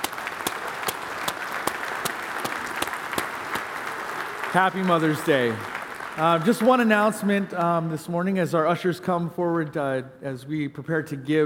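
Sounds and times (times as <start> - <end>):
audience clapping: 0.0 - 8.0
speech: 4.5 - 11.4.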